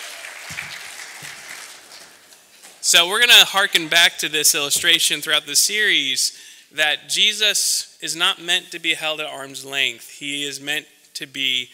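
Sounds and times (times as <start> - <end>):
faint applause from a church audience: 0.0 - 2.3
speech: 2.9 - 11.7.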